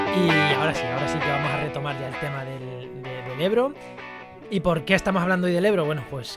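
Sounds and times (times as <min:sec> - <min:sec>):
news segment jingle: 0:00.1 - 0:05.2
speech: 0:00.2 - 0:04.0, 0:04.5 - 0:06.3.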